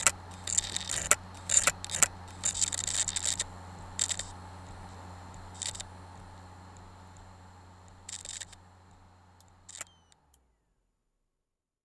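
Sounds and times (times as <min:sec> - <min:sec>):
Toshiba MK7559GSXF hard drive head crash clicking: 0:00.0 - 0:05.9
Toshiba MK7559GSXF hard drive scratching: 0:00.0 - 0:10.3.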